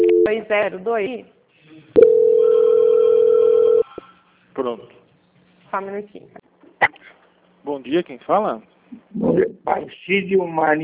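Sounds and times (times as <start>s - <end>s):
speech: 0.3s - 1.4s, 4.6s - 5.0s, 5.7s - 6.9s, 7.6s - 10.8s
steady single-pitched telephone tone: 2.0s - 3.9s.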